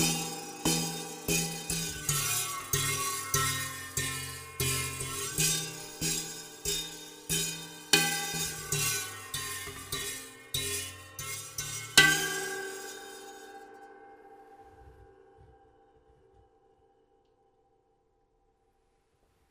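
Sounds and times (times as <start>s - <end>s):
hammering on strings: 0.0s - 14.0s.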